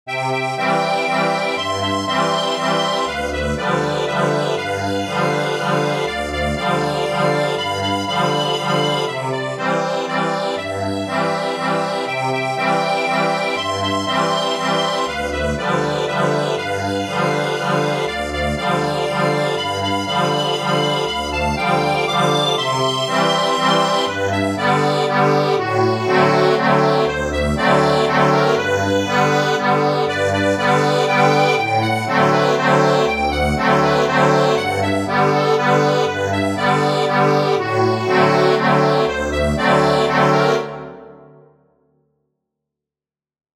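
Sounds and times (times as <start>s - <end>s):
accordion: 0.1s - 41.4s.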